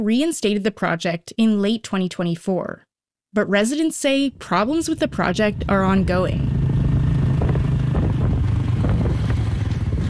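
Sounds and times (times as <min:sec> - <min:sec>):
speech: 0:00.0 - 0:06.6
motorbike riding from home to farmland: 0:04.3 - 0:10.0.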